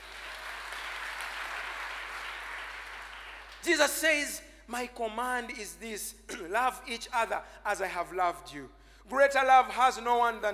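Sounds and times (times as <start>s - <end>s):
audience clapping: 0.0s - 3.7s
speech: 3.6s - 10.5s.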